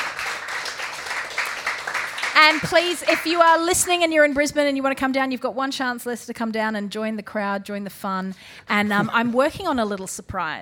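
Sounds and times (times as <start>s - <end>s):
audience clapping: 0.0s - 4.4s
speech: 2.4s - 10.6s.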